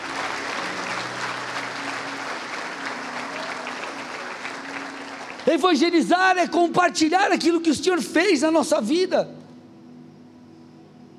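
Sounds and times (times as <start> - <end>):
audience applauding: 0.0 - 6.5
speech: 5.5 - 9.4.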